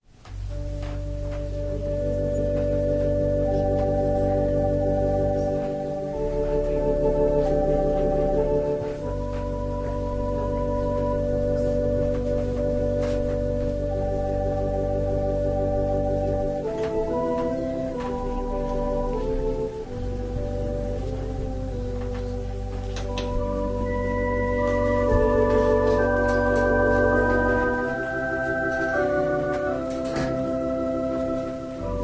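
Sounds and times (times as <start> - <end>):
organ prelude: 0.3 - 32.0.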